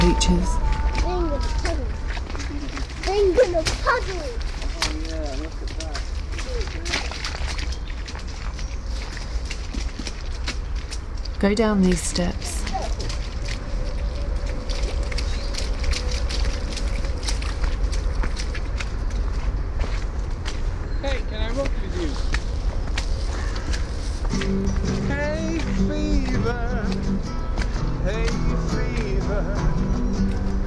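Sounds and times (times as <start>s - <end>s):
footsteps crunching over pebbles on a muddy path: 0.0s - 30.6s
speech: 0.1s - 0.7s, 3.4s - 5.8s, 11.4s - 12.9s.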